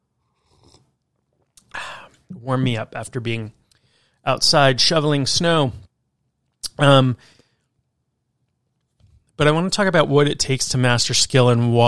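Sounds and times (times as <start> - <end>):
person slurping a sip of hot coffee: 0.2 - 1.0
swallow: 0.3 - 1.7
speech: 2.4 - 3.6, 4.2 - 5.8, 6.8 - 7.4, 9.4 - 11.8.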